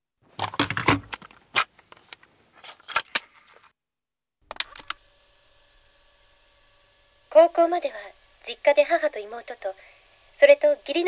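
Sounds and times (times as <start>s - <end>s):
cassette tape being handled and loaded into a deck: 0.4s - 3.7s, 4.5s - 5.1s
speech: 7.4s - 11.0s.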